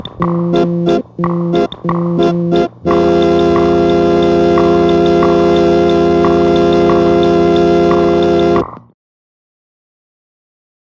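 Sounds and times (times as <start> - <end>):
musical improvisation in five-four time: 0.0 - 8.8.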